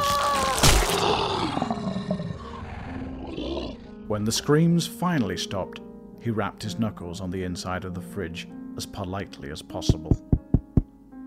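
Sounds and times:
beast roaring: 0.1 - 4.0
speech: 4.1 - 10.3.

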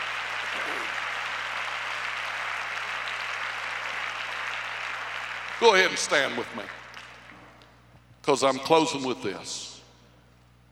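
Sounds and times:
audience clapping hands: 0.0 - 7.8
speech: 5.6 - 6.8, 8.2 - 9.7.

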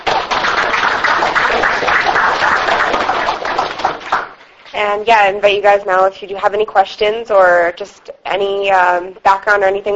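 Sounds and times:
audience applause: 0.0 - 4.4
speech: 4.8 - 9.9.

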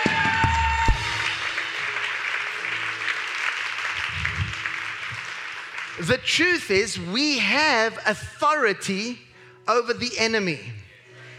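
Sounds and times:
audience clapping: 0.0 - 7.4
speech: 6.0 - 10.8.

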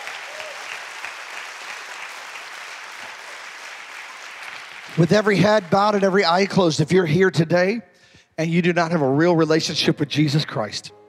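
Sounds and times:
audience applause: 0.0 - 6.5
speech: 4.9 - 11.0.

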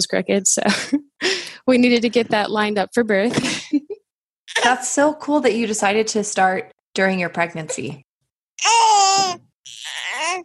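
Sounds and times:
speech: 0.0 - 3.6, 4.6 - 9.4
baby girl fussing: 8.6 - 10.4.

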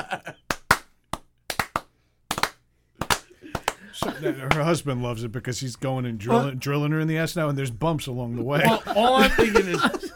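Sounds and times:
laughter: 0.0 - 0.4, 3.4 - 4.6, 8.5 - 10.1
people clapping slowly: 0.2 - 4.6
speech: 4.0 - 10.1.

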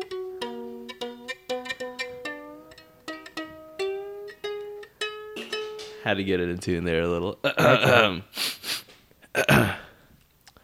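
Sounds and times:
speech: 6.0 - 8.4
throat clearing: 7.5 - 8.2, 9.3 - 10.0.

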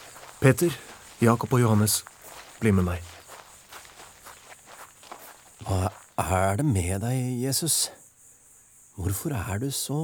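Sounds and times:
footsteps of a person walking off to pray in a dramatized Bible scene: 0.0 - 6.4
speech: 0.4 - 3.1, 6.3 - 8.0, 9.0 - 10.0.

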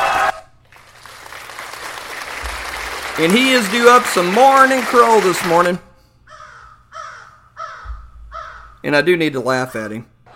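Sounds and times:
hand clapping applause: 0.0 - 5.8
speech: 3.2 - 5.9, 8.8 - 10.1.

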